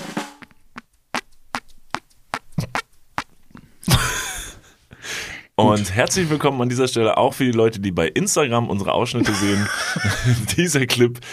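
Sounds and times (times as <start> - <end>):
fart-like popping noise made with skin against the collarbone: 0.3 - 3.6
laughter: 3.9 - 4.6, 9.2 - 10.6
speech: 5.7 - 11.3.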